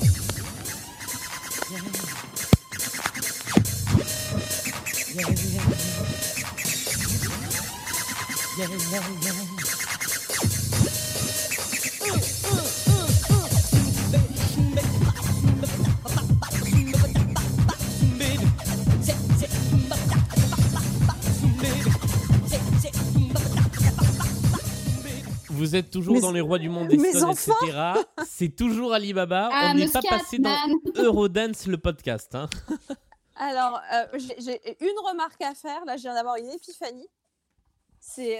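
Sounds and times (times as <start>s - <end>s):
DJ scratching on turntables: 0.0s - 27.6s
music: 0.0s - 28.0s
speech: 1.7s - 2.0s, 8.6s - 9.7s, 25.7s - 37.2s, 38.0s - 38.3s
laughter: 12.5s - 18.8s, 19.8s - 22.1s, 26.0s - 28.8s, 29.9s - 31.5s.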